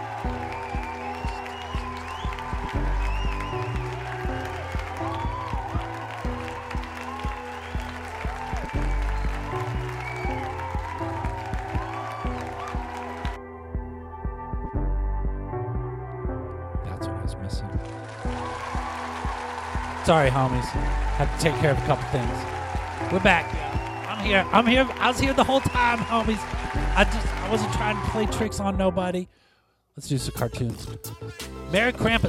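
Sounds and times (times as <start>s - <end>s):
crowd applause sound effect: 0.0s - 13.4s, 17.7s - 28.5s
rhythmic backing music: 0.0s - 29.1s, 30.1s - 32.2s
speech: 20.1s - 23.6s, 24.2s - 29.4s, 30.0s - 32.2s.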